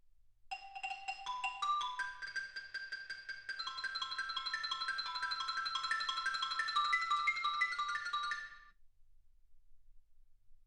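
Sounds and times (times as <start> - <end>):
xylophone: 0.5 - 8.7.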